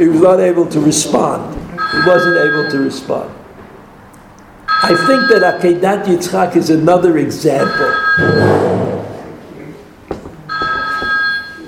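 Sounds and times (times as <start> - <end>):
speech: 0.0 - 3.4, 4.8 - 8.9
phone ringtone: 1.8 - 2.9, 4.7 - 5.6, 7.6 - 8.8, 10.5 - 11.6.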